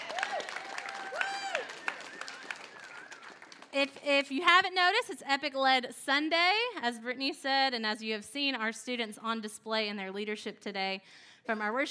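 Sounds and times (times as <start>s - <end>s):
whoops and cheers: 0.0s - 3.6s
audience applause: 0.0s - 3.8s
speech: 3.8s - 11.9s.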